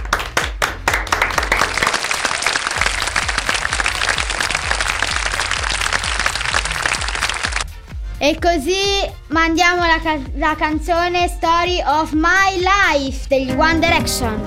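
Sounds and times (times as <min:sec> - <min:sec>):
applause: 0:00.0 - 0:07.7
speech: 0:08.2 - 0:14.4.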